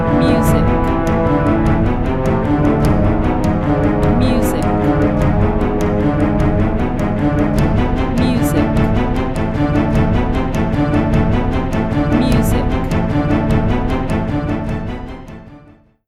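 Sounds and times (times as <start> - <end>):
horror film score music: 0.0 - 15.9.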